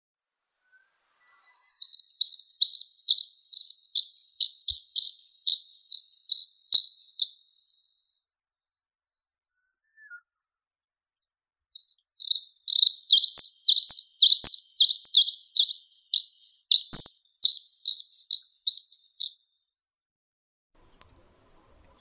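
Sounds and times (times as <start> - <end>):
grey-headed redstart Phoenicurus coeruleocephalus calling: 1.3 - 8.0, 11.8 - 19.3, 20.8 - 22.0.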